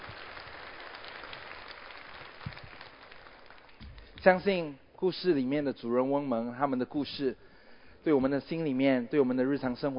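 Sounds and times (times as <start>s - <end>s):
warm crowd applause: 0.0s - 3.8s
speech: 4.2s - 9.9s.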